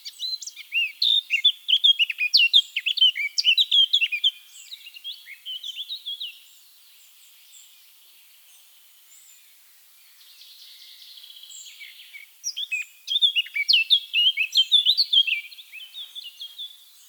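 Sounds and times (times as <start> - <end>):
Eurasian blackcap singing: 0.0 - 6.4, 11.6 - 17.0.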